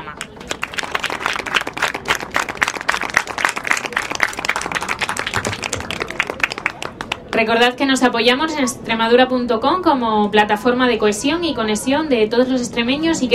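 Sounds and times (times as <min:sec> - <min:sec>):
audience applause: 0:00.2 - 0:07.5
speech: 0:07.4 - 0:13.3.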